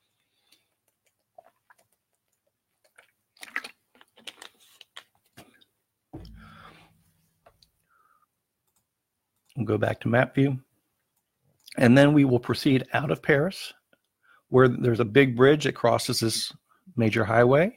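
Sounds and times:
person drinking water: 0.5s - 5.6s
speech: 9.6s - 10.7s, 11.8s - 13.8s, 14.5s - 17.7s.

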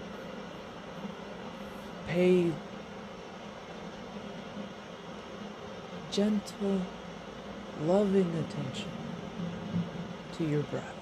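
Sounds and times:
speech: 2.1s - 2.7s, 6.1s - 7.0s, 7.8s - 9.0s, 10.4s - 11.0s
storm: 7.8s - 11.0s.

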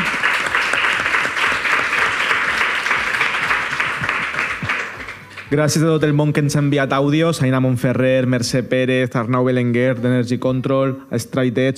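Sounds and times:
room full of people applauding: 0.0s - 6.2s
speech: 5.5s - 11.7s.

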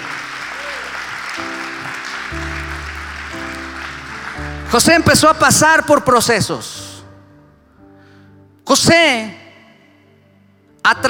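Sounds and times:
audience applauding: 0.0s - 5.4s
sustained keyboard chords: 0.0s - 8.7s
speech: 4.7s - 6.8s, 8.7s - 9.4s, 10.9s - 11.0s.

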